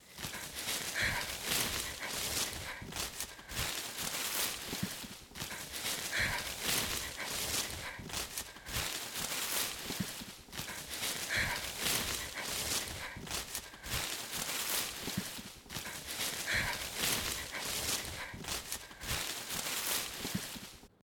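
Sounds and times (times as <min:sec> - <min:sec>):
person running in the woods: 0:00.0 - 0:20.9.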